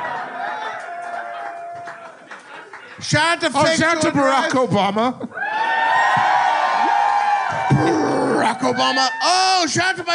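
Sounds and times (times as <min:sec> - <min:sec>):
crowd cheering and whooping: 0:00.0 - 0:02.3, 0:05.3 - 0:10.1
speech: 0:03.0 - 0:05.3, 0:08.6 - 0:10.1.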